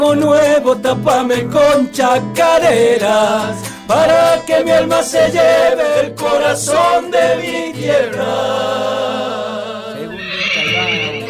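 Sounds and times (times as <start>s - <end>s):
speech: 0.0s - 9.2s
mare neighing: 10.0s - 11.2s.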